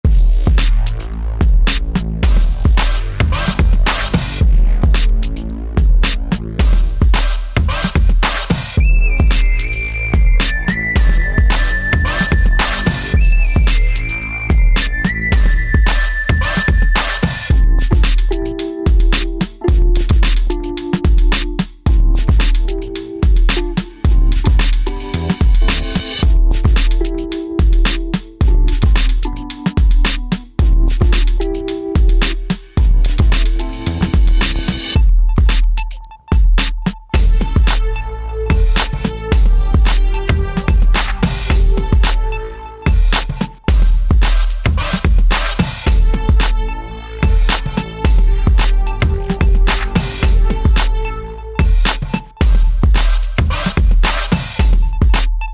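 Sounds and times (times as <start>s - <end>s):
hip hop music: 0.0s - 55.5s.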